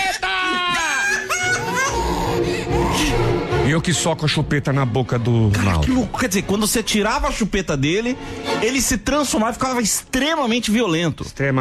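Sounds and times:
child crying: 0:00.0 - 0:03.3
speech: 0:03.7 - 0:11.6.

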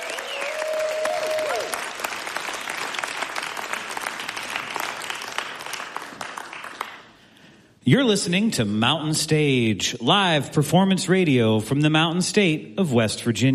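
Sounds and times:
audience applause: 0:00.0 - 0:07.1
speech: 0:07.9 - 0:13.5.

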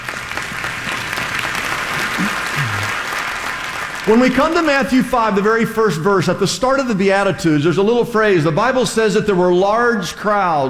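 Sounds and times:
audience clapping: 0:00.0 - 0:05.5
speech: 0:04.0 - 0:10.6.

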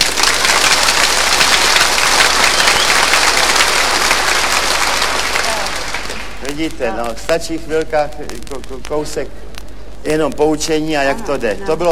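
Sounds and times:
frenzied crowd applause: 0:00.0 - 0:06.8
speech: 0:06.6 - 0:11.8.

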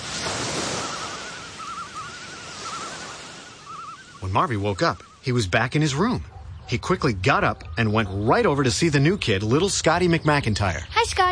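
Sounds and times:
ocean waves washing: 0:00.0 - 0:06.2
faint wavering whistle-like tone: 0:00.6 - 0:05.2
speech: 0:04.2 - 0:11.2.

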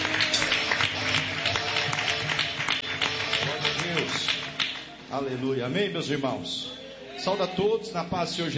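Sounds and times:
audience clapping: 0:00.0 - 0:05.0
speech: 0:05.1 - 0:08.5.

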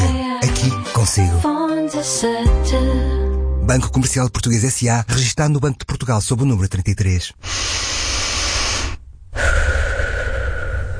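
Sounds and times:
speech: 0:00.6 - 0:07.9
deep breaths of fresh air in nature: 0:07.4 - 0:10.9.

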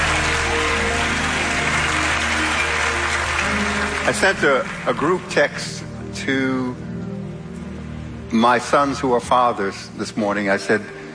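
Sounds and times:
applause: 0:00.0 - 0:05.8
speech: 0:04.1 - 0:06.8, 0:08.3 - 0:11.0.

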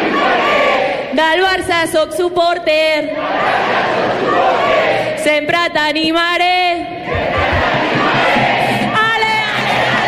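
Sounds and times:
football supporters singing and chanting at a stadium: 0:00.0 - 0:01.2, 0:03.0 - 0:05.2, 0:06.8 - 0:10.0
speech: 0:01.2 - 0:07.5.

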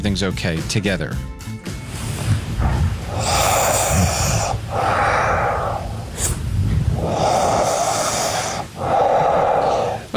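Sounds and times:
speech: 0:00.0 - 0:01.4
sleeping person breathing heavily with snorting inhales: 0:01.9 - 0:10.1.

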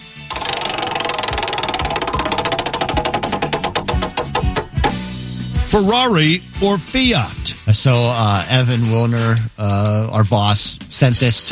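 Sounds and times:
prize wheel spinning and clicking: 0:00.3 - 0:05.2
speech: 0:05.7 - 0:11.4.

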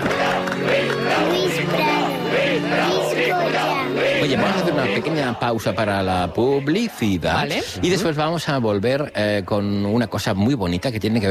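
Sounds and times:
crowd chanting a name: 0:00.0 - 0:07.9
speech: 0:04.2 - 0:11.2.

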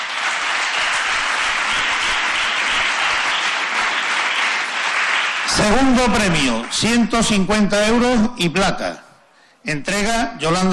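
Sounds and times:
applause: 0:00.0 - 0:08.0
speech: 0:05.6 - 0:09.0, 0:09.6 - 0:10.7.

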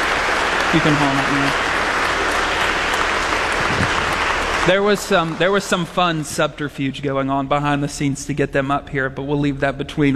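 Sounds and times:
audience applause at a presentation ceremony: 0:00.0 - 0:06.6
speech: 0:00.7 - 0:01.7, 0:04.7 - 0:10.1.

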